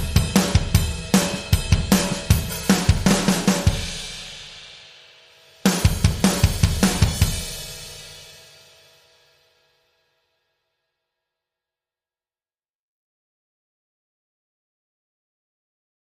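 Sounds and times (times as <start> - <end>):
drums: 0.0 - 9.8.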